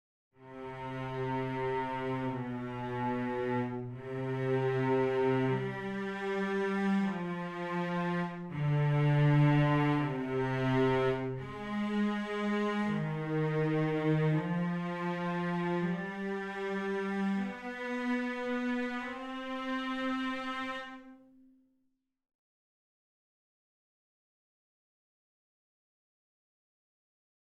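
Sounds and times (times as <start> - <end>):
cellos playing: 0.4 - 21.4.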